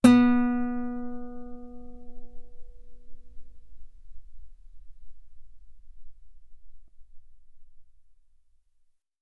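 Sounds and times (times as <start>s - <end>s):
guitar B3 note on B string played fortissimo: 0.0s - 7.0s.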